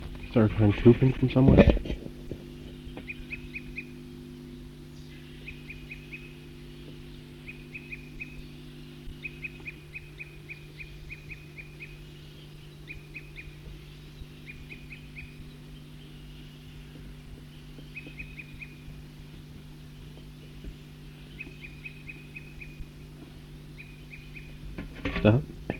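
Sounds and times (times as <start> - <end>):
bird calling: 0.0 - 25.7
speech: 0.4 - 2.0.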